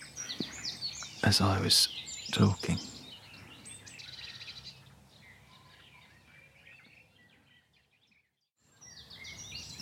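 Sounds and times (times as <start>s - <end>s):
garden warbler singing: 0.0s - 9.7s
speech: 1.2s - 2.9s.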